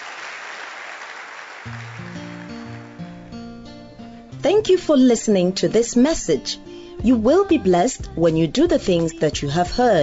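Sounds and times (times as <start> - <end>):
audience clapping: 0.0 - 3.6
speech: 1.6 - 1.9, 4.4 - 10.0.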